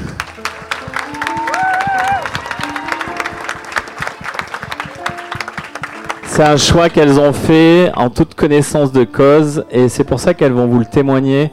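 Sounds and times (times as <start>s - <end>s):
audience applause: 0.0s - 6.9s
voices cheering: 0.8s - 4.5s
speech: 6.4s - 11.5s.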